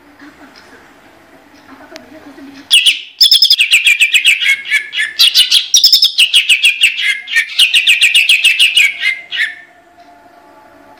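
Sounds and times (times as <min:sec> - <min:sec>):
greater green leafbird song: 0:02.7 - 0:09.7.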